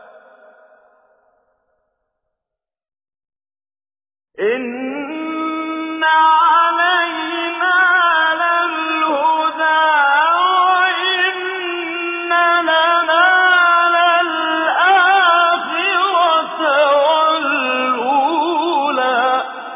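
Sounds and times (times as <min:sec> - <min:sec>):
tajweed recitation of a Quran chapter: 0:04.4 - 0:19.7.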